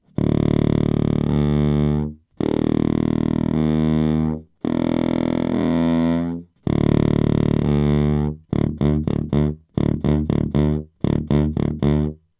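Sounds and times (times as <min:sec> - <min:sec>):
contrabass saxophone low notes: 0:00.0 - 0:12.3.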